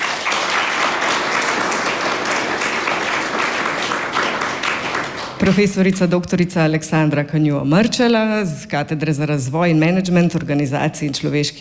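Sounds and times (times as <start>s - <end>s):
studio audience applause: 0.0s - 5.7s
speech: 5.4s - 11.5s.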